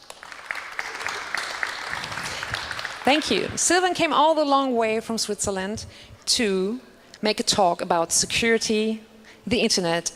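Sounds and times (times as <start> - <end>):
audience applause for a conference speaker: 0.0 - 3.6
speech: 3.0 - 10.1.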